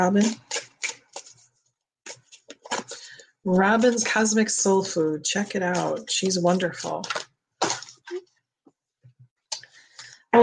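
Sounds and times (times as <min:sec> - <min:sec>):
speech: 0:00.0 - 0:00.5, 0:03.4 - 0:07.2
cards rustling and snapping as one is pulled from a deck: 0:00.2 - 0:03.0.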